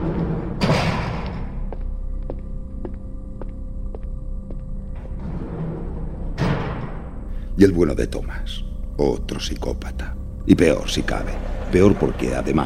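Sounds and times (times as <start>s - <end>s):
heavy doors closed in a psychiatric ward: 0.0s - 1.7s, 5.0s - 7.5s, 10.7s - 12.6s
electric hum: 0.0s - 12.6s
speech: 7.6s - 12.6s.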